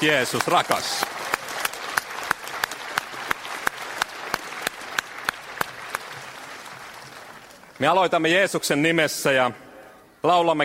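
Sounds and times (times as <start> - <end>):
speech: 0.0 - 1.2, 7.8 - 9.6, 10.2 - 10.6
audience applause: 0.0 - 8.3.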